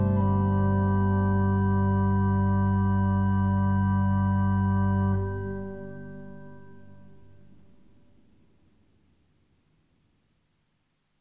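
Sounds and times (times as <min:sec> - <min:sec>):
organ playing: 0:00.0 - 0:07.0.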